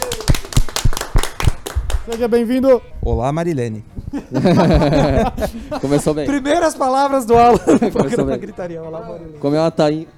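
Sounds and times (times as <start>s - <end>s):
hand clapping welcoming a new member: 0.0s - 2.5s
speech: 2.1s - 10.1s
laughter: 4.1s - 8.8s.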